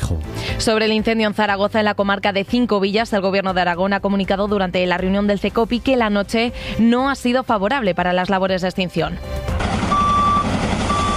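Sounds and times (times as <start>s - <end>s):
speech: 0.1s - 9.5s
firefighters' truck engine rumble: 9.5s - 11.1s
firefighters' truck reversing beeps at a wildfire in Cinco Villas, Zaragoza: 9.6s - 11.1s.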